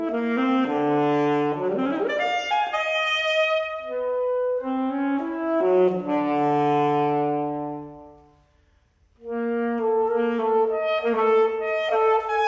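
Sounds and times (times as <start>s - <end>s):
alto saxophone solo: 0.0s - 12.4s.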